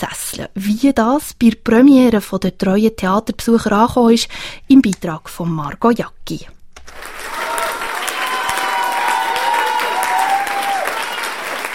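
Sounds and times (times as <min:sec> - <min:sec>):
speech: 0:00.4 - 0:07.2
long theatre applause: 0:06.9 - 0:11.7
cheering and whooping: 0:07.0 - 0:11.7.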